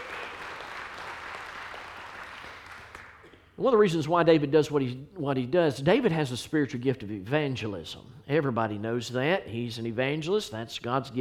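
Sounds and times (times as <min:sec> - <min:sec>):
audience giving appreciation applause: 0:00.0 - 0:03.2
speech: 0:03.6 - 0:11.1.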